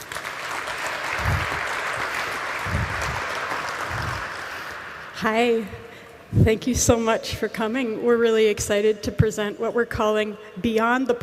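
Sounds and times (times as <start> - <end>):
audience applause: 0.0 - 5.2
speech: 5.2 - 11.2.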